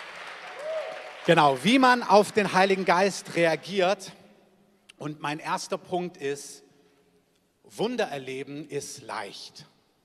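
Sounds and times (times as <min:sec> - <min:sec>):
audience applause: 0:00.0 - 0:03.4
speech: 0:01.2 - 0:04.2, 0:05.0 - 0:06.6, 0:07.7 - 0:09.7.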